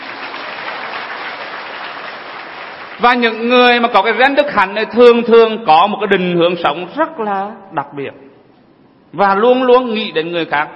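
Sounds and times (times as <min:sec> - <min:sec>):
audience applauding: 0:00.0 - 0:03.5
speech: 0:03.0 - 0:08.3, 0:09.1 - 0:10.7.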